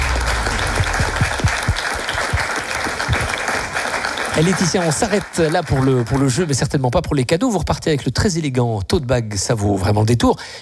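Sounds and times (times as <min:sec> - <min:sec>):
audience applauding: 0:00.0 - 0:06.7
speech: 0:04.4 - 0:10.6.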